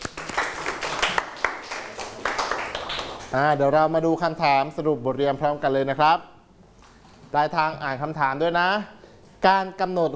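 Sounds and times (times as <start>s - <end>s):
classroom applause: 0.0s - 3.4s
speech: 3.3s - 6.3s, 7.3s - 10.1s.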